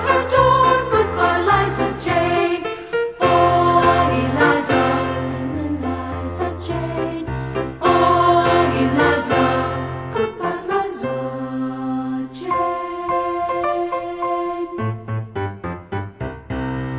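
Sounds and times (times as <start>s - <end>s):
alto choir singing: 0.0s - 15.3s.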